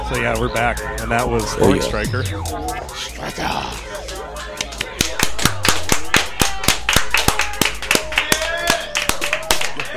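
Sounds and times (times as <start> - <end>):
speech: 0.1 - 3.8
hand clapping right into the microphone: 4.1 - 9.9.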